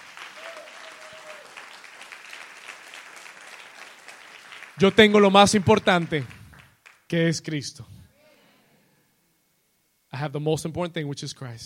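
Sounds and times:
loud audience applause: 0.0 - 7.0
speech: 4.8 - 6.4, 7.1 - 7.9, 10.2 - 11.6.

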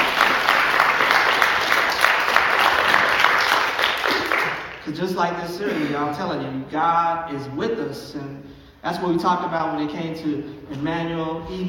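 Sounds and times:
audience applause: 0.0 - 4.8
speech: 4.9 - 11.6.

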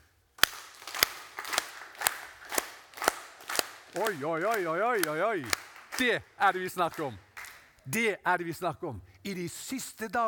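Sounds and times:
group clapping hands to imitate a tropical storm: 0.4 - 7.8
speech: 4.0 - 7.3, 7.9 - 10.2.

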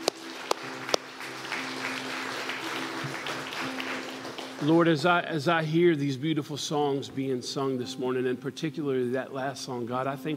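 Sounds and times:
church congregation clapping in praise during a morning service: 0.0 - 5.3
speech: 4.6 - 10.3.

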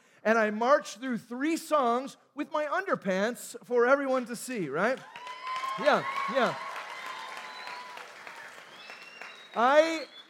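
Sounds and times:
speech: 0.2 - 6.7, 9.6 - 10.2
audience applause: 5.0 - 10.2.

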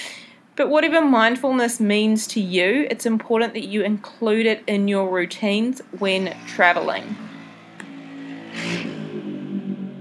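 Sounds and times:
speech: 0.6 - 7.3
noisy motorbike engine passing outside: 5.8 - 9.9.

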